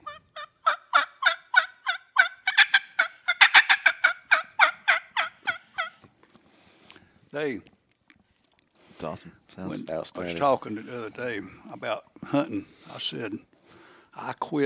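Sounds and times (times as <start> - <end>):
man imitating a wild turkey gobble: 0.0 - 6.0
speech: 7.4 - 7.7, 9.0 - 13.5, 14.2 - 14.6.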